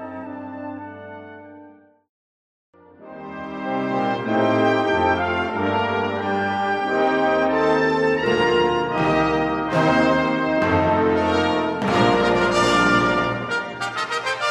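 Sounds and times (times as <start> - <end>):
fanfare: 3.0 - 14.4.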